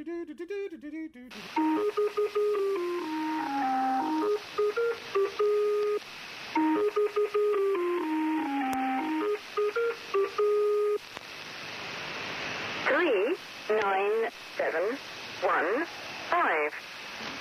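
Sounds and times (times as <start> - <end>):
numbers station radio hiss: 1.3 - 17.3
numbers station synthesized header tune of an English folk song: 1.6 - 6.0, 6.6 - 11.0.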